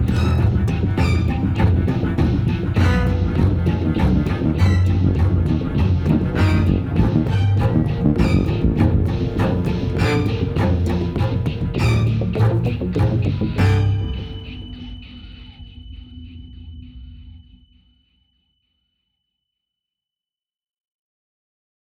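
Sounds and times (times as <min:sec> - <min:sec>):
action music loop: 0:00.0 - 0:14.9.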